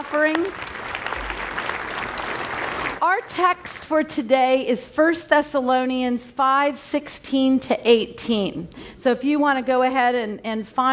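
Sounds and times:
audience applause: 0:00.0 - 0:03.0
speech: 0:00.1 - 0:00.9, 0:03.0 - 0:10.9.

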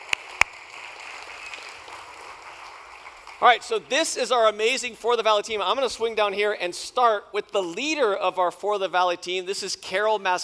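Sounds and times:
audience applause: 0:00.0 - 0:03.8
speech: 0:03.4 - 0:10.4.

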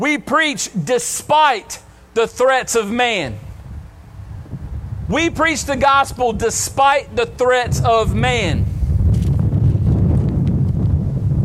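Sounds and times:
speech: 0:00.0 - 0:03.4, 0:05.1 - 0:08.7
strong wind buffeting the microphone: 0:03.2 - 0:11.4.

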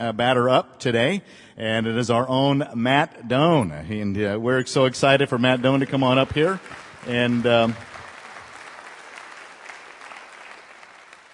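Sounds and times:
speech: 0:00.0 - 0:07.9
church congregation clapping to welcome a pastor: 0:05.4 - 0:11.3.

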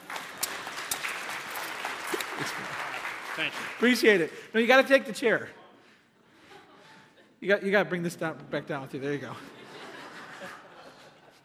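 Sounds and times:
crowd applauding: 0:00.0 - 0:04.8
laughter: 0:01.6 - 0:03.7, 0:06.2 - 0:07.4, 0:09.2 - 0:11.4
speech: 0:02.4 - 0:05.6, 0:07.4 - 0:09.6.

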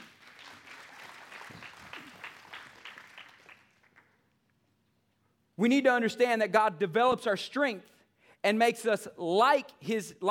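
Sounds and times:
audience hand clapping: 0:00.0 - 0:04.4
speech: 0:05.6 - 0:10.2.

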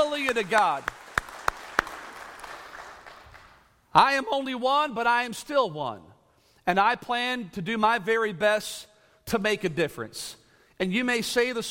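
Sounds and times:
hand claps of praise in a church congregation: 0:00.0 - 0:03.7
speech: 0:00.3 - 0:01.0, 0:04.0 - 0:06.1, 0:06.7 - 0:11.6.

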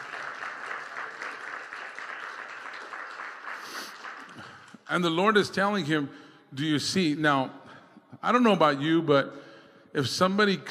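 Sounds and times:
audience applause: 0:00.0 - 0:04.8
speech: 0:04.9 - 0:07.6, 0:08.2 - 0:09.4, 0:10.0 - 0:10.6.

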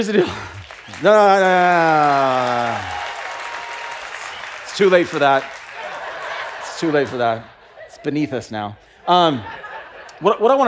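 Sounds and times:
speech: 0:00.0 - 0:03.0, 0:04.8 - 0:05.6, 0:06.8 - 0:09.6, 0:10.2 - 0:10.6
laughter: 0:00.0 - 0:03.3, 0:04.0 - 0:10.6
audience clapping: 0:00.0 - 0:07.6.

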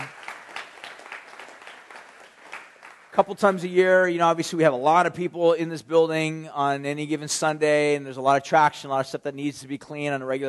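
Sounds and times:
audience applause: 0:00.0 - 0:03.2
speech: 0:03.2 - 0:10.4.

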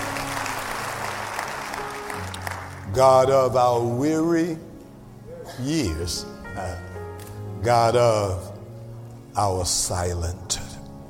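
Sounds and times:
hands clapping: 0:00.0 - 0:02.9
speech: 0:02.9 - 0:04.7, 0:05.5 - 0:06.9, 0:07.6 - 0:08.5, 0:09.4 - 0:10.7.

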